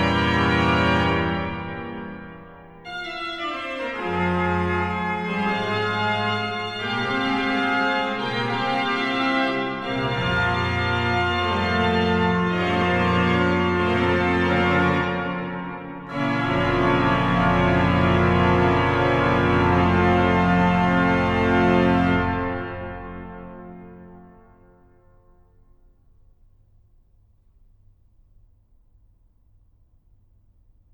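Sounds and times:
organ fughetta: 0.0s - 24.5s.

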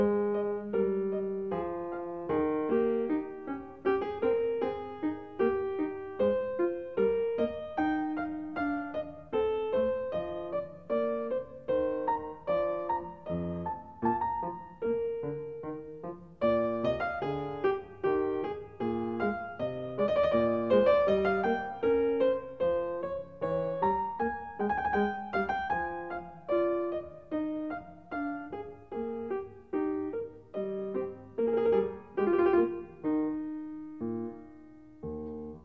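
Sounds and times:
minuet: 0.0s - 35.6s.

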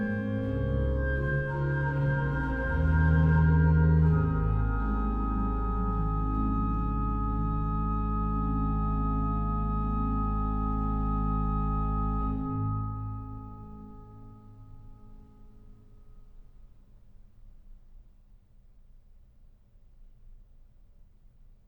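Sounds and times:
organ playing a hymn: 0.0s - 13.9s.

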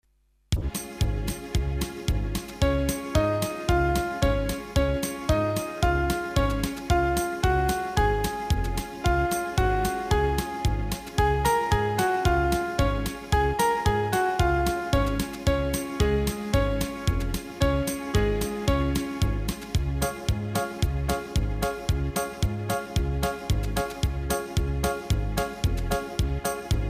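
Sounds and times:
Bulgarian instrumental karaoke music: 0.6s - 26.8s.

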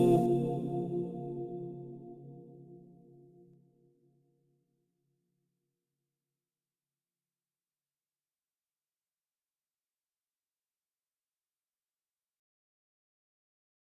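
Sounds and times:
crystal bowls ringing in B-flat minor: 0.0s - 1.6s.

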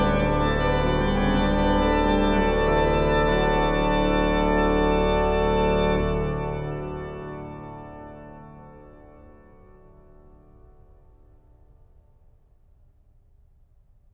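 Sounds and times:
organ playing a chorale: 0.0s - 10.4s.

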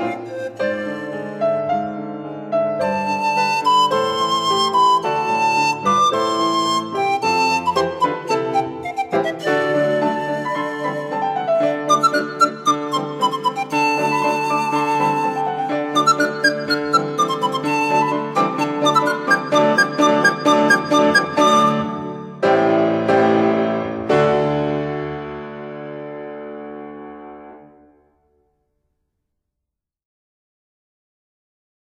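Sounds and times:
flute and piano piece: 0.0s - 28.0s.

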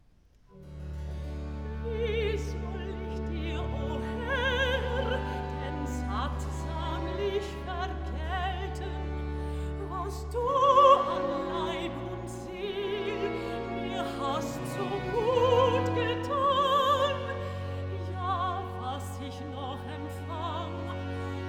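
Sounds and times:
alto singing: 1.6s - 21.4s.

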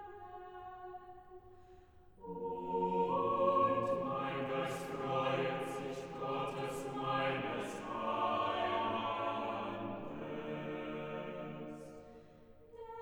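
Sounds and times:
organ chorale: 2.2s - 12.4s.

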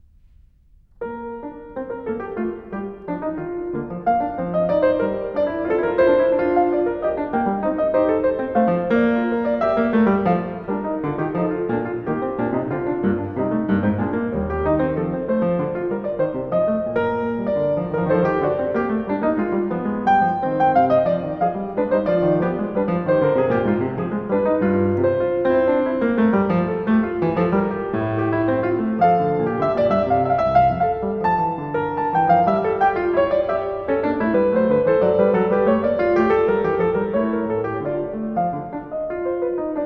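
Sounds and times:
two-part invention on piano: 0.0s - 39.8s.

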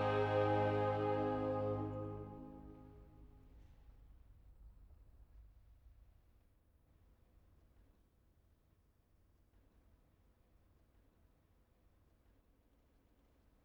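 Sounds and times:
choir singing cantatas: 0.0s - 3.0s.

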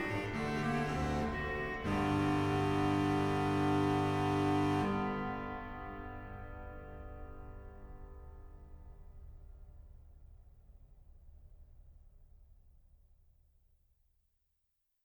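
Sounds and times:
organ fughetta: 0.0s - 6.1s.

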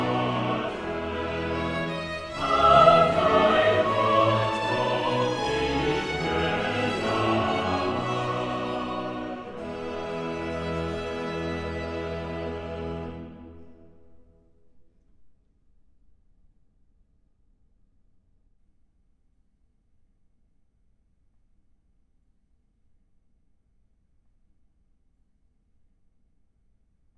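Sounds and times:
chorale: 0.0s - 14.2s.

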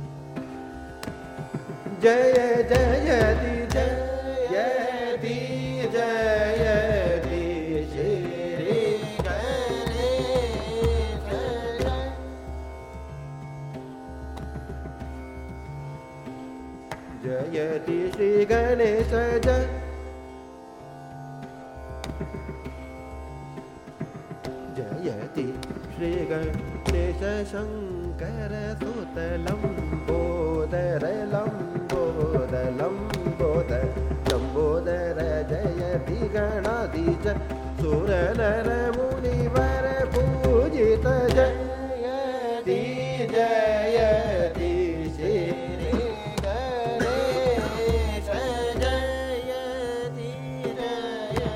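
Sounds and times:
male vocal Dhrupad chant in Raga Malkauns: 2.0s - 12.3s, 17.2s - 19.8s, 24.8s - 51.5s.

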